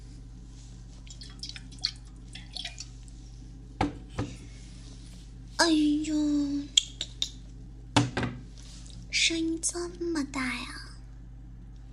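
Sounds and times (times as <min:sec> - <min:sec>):
alcohol dripping onto a bleeding wound: 0:01.0 - 0:03.2
speech: 0:05.7 - 0:06.7, 0:09.3 - 0:10.8.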